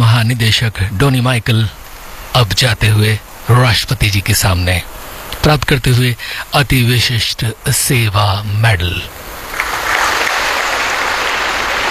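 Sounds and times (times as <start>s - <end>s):
speech: 0.3s - 9.2s
applause at a medal ceremony before the President: 9.5s - 11.8s.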